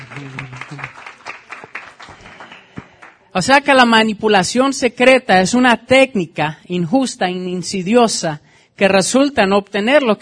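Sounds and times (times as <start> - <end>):
audience applause: 0.0 - 3.2
speech: 0.2 - 1.1, 3.4 - 10.1.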